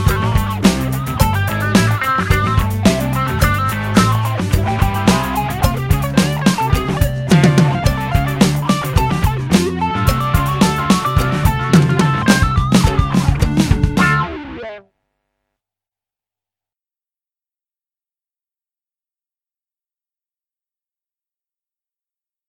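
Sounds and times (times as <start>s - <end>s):
drum kit groove backing: 0.0s - 14.6s.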